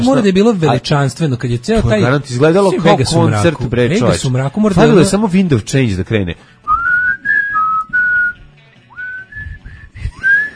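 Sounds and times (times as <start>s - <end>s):
speech: 0.0s - 6.6s
solo whistled rendition of a national anthem: 6.7s - 10.5s.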